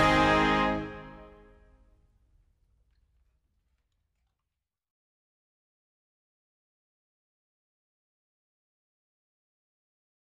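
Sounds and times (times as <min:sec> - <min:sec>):
national anthem: 0:00.0 - 0:01.6.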